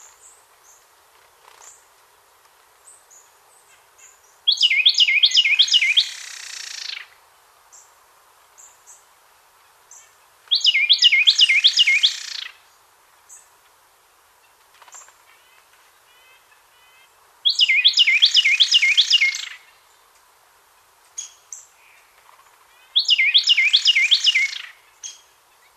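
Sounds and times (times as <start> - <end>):
Carolina wren Thryothorus ludovicianus rolling song phrases: 3.0 - 7.9, 8.5 - 13.5, 15.4 - 20.1, 22.7 - 25.7.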